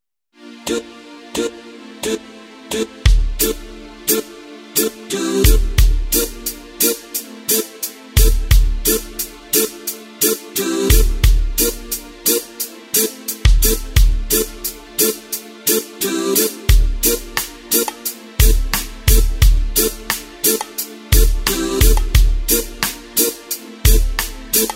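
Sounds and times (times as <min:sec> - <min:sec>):
reggaeton music: 0:00.7 - 0:24.7.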